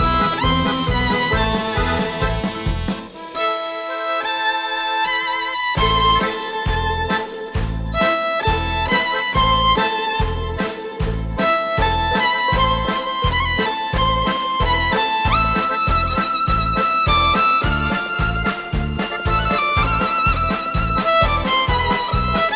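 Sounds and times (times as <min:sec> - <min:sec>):
violin melody: 0:00.0 - 0:22.5.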